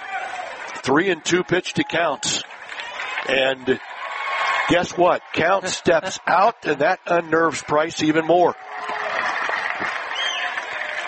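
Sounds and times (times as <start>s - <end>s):
fans clapping at a high school baseball game: 0.0s - 11.0s
speech: 0.8s - 2.5s, 3.2s - 3.9s, 4.7s - 8.7s.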